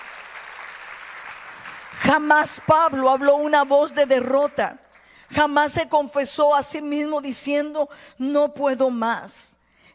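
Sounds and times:
audience applauding: 0.0 - 3.4
speech: 1.9 - 9.9.

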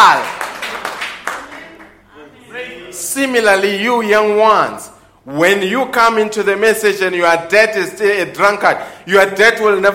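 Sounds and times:
group clapping hands: 0.0 - 2.1
speech: 3.2 - 9.9.

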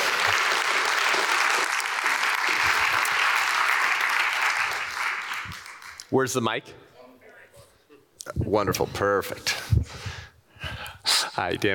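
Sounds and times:
audience applause: 0.0 - 6.1
speech: 6.1 - 6.9, 8.4 - 10.0, 11.4 - 11.7.

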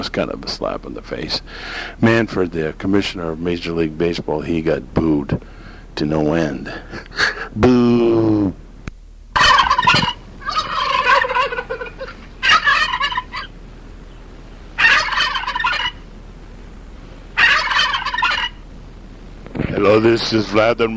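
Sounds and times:
speech: 0.0 - 8.6, 19.9 - 20.9
turkey gobbling: 9.4 - 16.0, 17.4 - 18.6.

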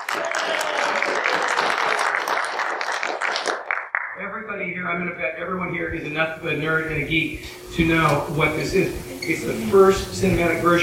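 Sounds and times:
audience round of applause: 0.0 - 4.2
speech: 4.8 - 10.8.

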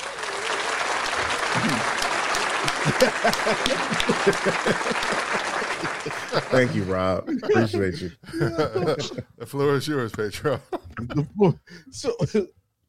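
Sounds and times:
clapping: 0.0 - 6.7
laughter: 1.5 - 9.4, 10.3 - 12.5
speech: 3.0 - 12.6.

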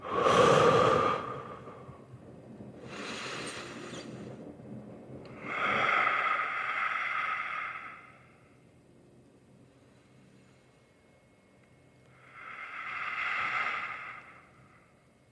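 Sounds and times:
person taking deep breaths: 0.0 - 2.1, 2.8 - 4.4, 5.3 - 8.7, 12.1 - 15.2.

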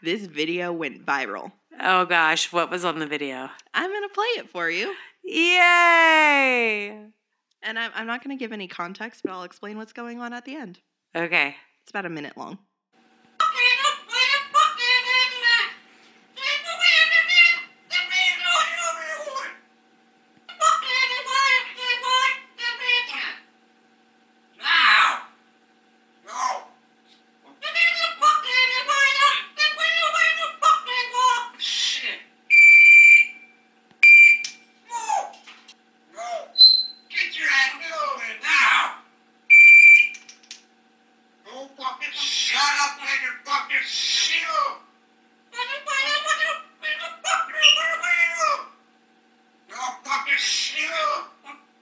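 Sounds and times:
speech: 0.0 - 12.7
African grey parrot chattering in speech-like phrases: 13.4 - 15.8, 16.4 - 19.5, 20.5 - 23.4, 24.6 - 25.3, 27.5 - 33.4, 36.2 - 40.2, 41.5 - 44.6, 45.5 - 48.7, 49.7 - 51.6
African grey parrot imitating smoke detector beeps: 32.5 - 33.4, 34.0 - 34.5, 36.6 - 37.1, 39.5 - 40.2, 47.4 - 48.1.

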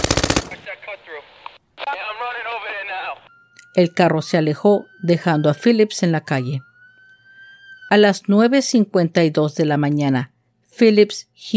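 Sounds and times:
police gunfire: 0.0 - 0.7
speech: 3.8 - 6.7, 7.9 - 11.5.

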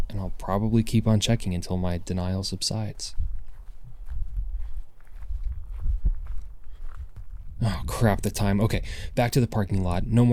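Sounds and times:
speech: 0.2 - 3.2, 7.6 - 10.3
footsteps crunching on gravel: 2.8 - 7.6.

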